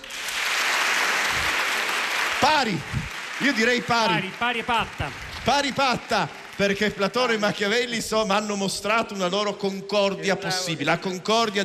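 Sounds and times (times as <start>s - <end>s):
audience applause: 0.0s - 8.2s
speech: 2.5s - 11.6s.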